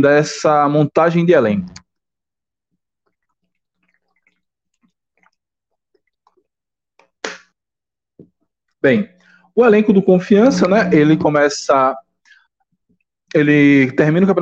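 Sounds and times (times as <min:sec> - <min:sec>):
speech: 0:00.0 - 0:01.8, 0:08.8 - 0:12.0, 0:13.3 - 0:14.3
person sipping water: 0:03.1 - 0:07.1
short breath: 0:09.2 - 0:09.5.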